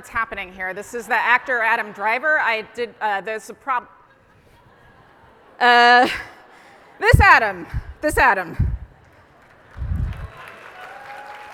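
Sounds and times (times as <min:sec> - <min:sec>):
speech: 0:00.0 - 0:04.0, 0:05.6 - 0:06.3, 0:07.0 - 0:08.7
audience applause: 0:09.0 - 0:11.5.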